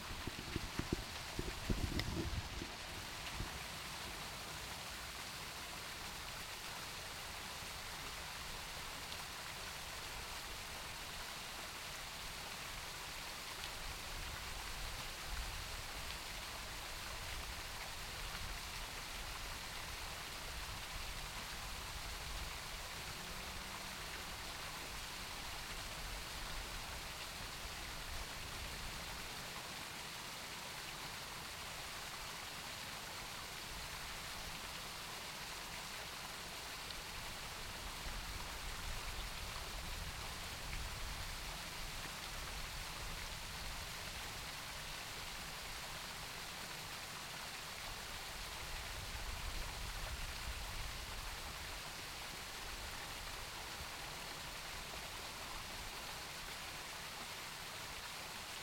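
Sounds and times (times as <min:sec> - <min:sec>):
fountain water recorded with a microphone: 0:00.0 - 0:58.6.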